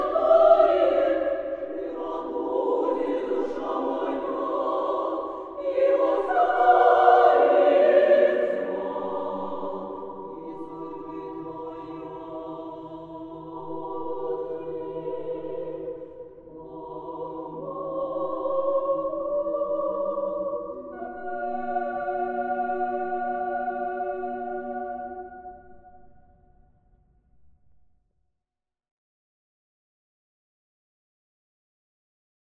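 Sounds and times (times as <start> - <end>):
female choir singing: 0.0 - 26.0.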